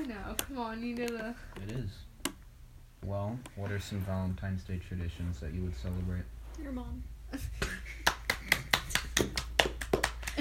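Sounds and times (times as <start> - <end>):
speech: 0.0 - 2.1, 3.0 - 8.0
hand clapping: 7.6 - 10.3.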